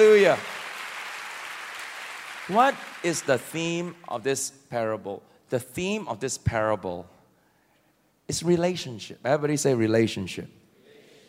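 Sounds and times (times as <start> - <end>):
speech: 0.0 - 0.5, 2.5 - 7.2, 8.3 - 10.6
audience clapping: 0.0 - 4.1.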